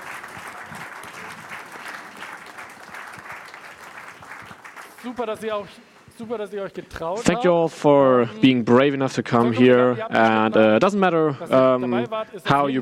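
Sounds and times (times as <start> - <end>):
crowd applauding: 0.0 - 5.6
speech: 5.0 - 12.7.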